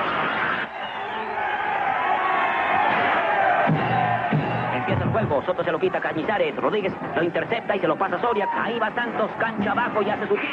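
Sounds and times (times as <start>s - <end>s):
ice hockey crowd cheering in a 1945 Disney cartoon: 0.0s - 10.5s
speech: 5.2s - 10.5s.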